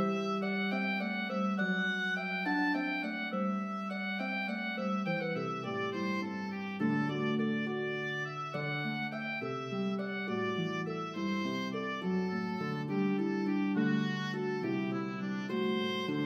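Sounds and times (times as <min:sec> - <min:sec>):
harp: 0:00.0 - 0:16.2
oboe melody in C: 0:00.0 - 0:16.2.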